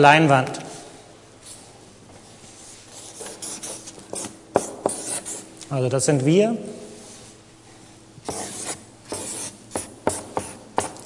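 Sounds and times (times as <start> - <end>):
speech: 0.0 - 0.6, 5.7 - 6.8
drawing on a board: 2.9 - 5.5, 8.3 - 10.6.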